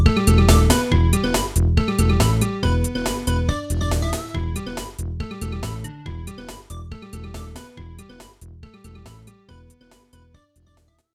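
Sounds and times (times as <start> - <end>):
bloop: 0.0 - 6.6.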